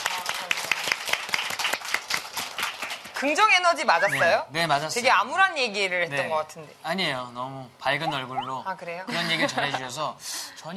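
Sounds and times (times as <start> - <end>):
audience applauding: 0.0 - 3.1
speech: 3.2 - 10.7.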